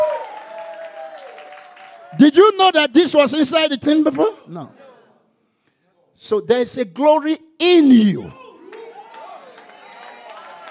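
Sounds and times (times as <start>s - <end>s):
audience clapping: 0.0s - 2.2s, 8.6s - 10.7s
speech: 2.1s - 4.8s, 6.2s - 8.4s.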